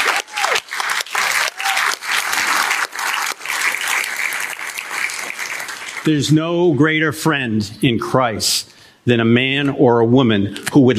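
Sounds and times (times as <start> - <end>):
audience clapping: 0.0 - 6.3
speech: 6.0 - 10.9.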